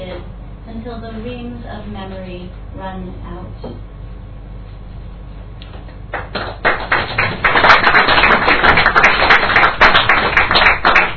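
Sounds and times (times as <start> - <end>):
speech: 0.8 - 3.9
audience clapping: 6.1 - 11.1.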